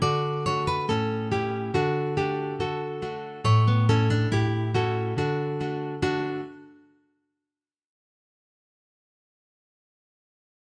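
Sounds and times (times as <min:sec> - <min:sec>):
guitars: 0:00.0 - 0:06.8.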